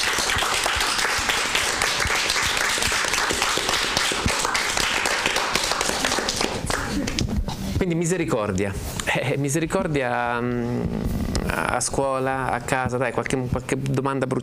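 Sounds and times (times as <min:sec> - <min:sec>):
sustained crowd applause: 0:00.0 - 0:07.2
speech: 0:07.8 - 0:14.4.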